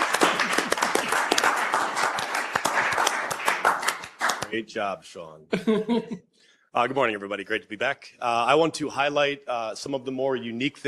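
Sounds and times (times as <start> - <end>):
audience clapping: 0.0 - 4.6
speech: 4.5 - 10.8.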